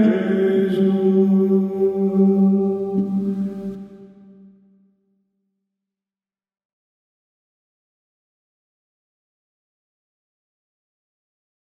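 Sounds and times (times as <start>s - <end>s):
contralto voices singing: 0.0s - 4.3s.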